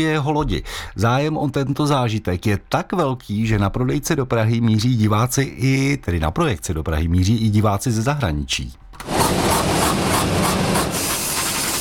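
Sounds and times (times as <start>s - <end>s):
speech: 0.0s - 9.7s
70mm IMAX film projector running: 9.0s - 11.7s
fast regular clattering pulse of the projector: 9.0s - 11.7s.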